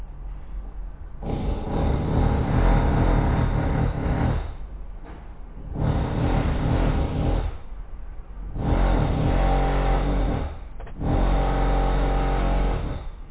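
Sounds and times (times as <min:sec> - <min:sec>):
drill: 0:01.2 - 0:04.6, 0:05.7 - 0:07.6, 0:08.5 - 0:13.2.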